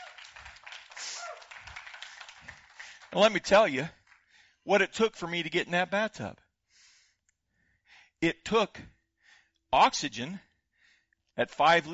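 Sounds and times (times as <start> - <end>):
audience applause: 0.0 - 4.2
speech: 3.1 - 4.0, 4.7 - 6.4, 8.2 - 9.0, 9.7 - 10.5, 11.4 - 11.9.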